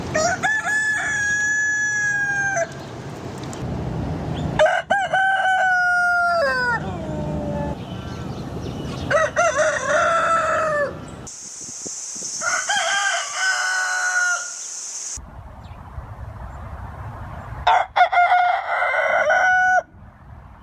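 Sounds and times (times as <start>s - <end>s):
rooster crowing: 0.1s - 2.8s, 4.6s - 7.7s, 9.0s - 11.0s, 12.4s - 14.7s, 17.6s - 19.9s.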